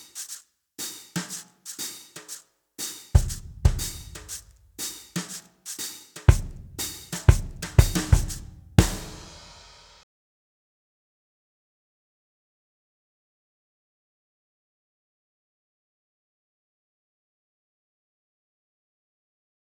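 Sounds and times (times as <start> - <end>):
drums: 0.0 - 10.0.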